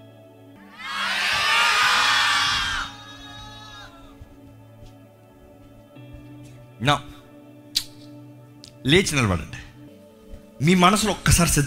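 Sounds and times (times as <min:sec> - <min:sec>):
church congregation shouting joyfully: 0:00.7 - 0:04.1
speech: 0:06.8 - 0:07.1, 0:08.8 - 0:09.6, 0:10.6 - 0:11.6.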